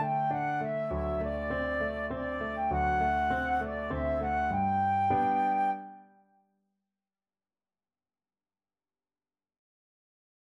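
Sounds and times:
flute playing: 0.0 - 6.2.

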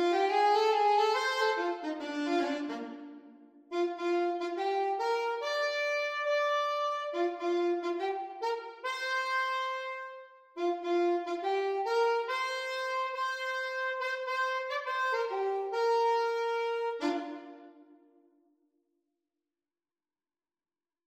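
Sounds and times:
saxophone: 0.0 - 18.1.

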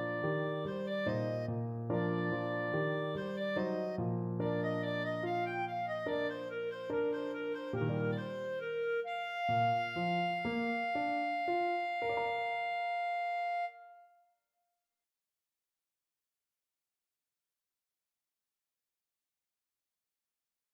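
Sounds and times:
clarinet duet: 0.0 - 14.2.

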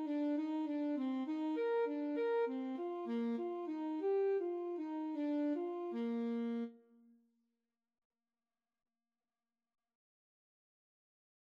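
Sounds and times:
clarinet melody in a clarinet and saxophone duet: 0.0 - 7.0.

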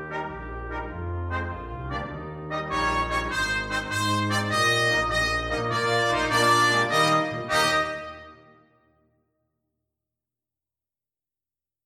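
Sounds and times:
brass quintet playing: 0.0 - 8.8.

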